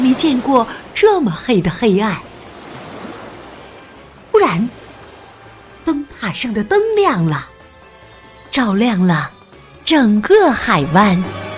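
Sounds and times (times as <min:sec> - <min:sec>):
sea waves lapping against a small boat: 0:00.0 - 0:08.4
speech: 0:00.2 - 0:02.3, 0:04.5 - 0:04.8, 0:05.9 - 0:07.5, 0:08.5 - 0:11.4.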